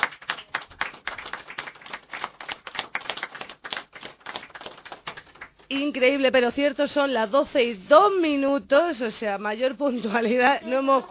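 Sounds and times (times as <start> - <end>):
applause: 0.0 - 6.0
speech: 5.7 - 11.1.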